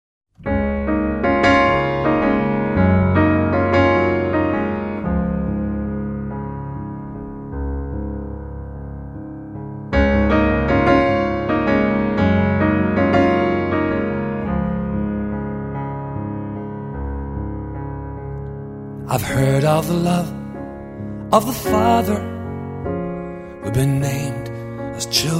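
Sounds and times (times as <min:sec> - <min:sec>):
piano: 0:00.3 - 0:25.3.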